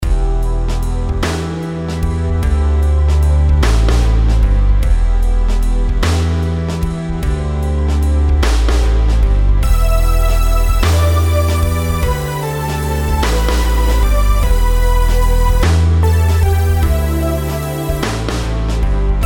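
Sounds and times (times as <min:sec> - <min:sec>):
compound rhythms: 0:00.0 - 0:19.2.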